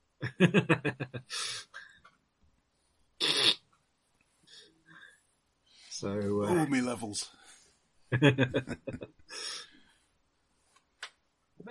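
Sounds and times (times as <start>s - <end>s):
laughter: 0.2s - 1.3s, 8.2s - 9.1s
speech: 0.3s - 1.7s, 6.0s - 7.4s, 8.1s - 9.6s
nose sniffing: 3.2s - 3.6s.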